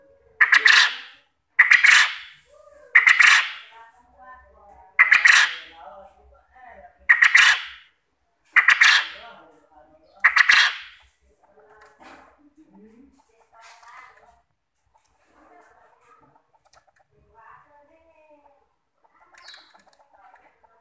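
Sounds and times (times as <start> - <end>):
quail calling with soft chirps and loud harsh bursts as a lure: 0.0 - 3.8, 5.0 - 5.8, 7.0 - 7.9, 8.5 - 9.4, 10.0 - 11.6, 18.4 - 20.7.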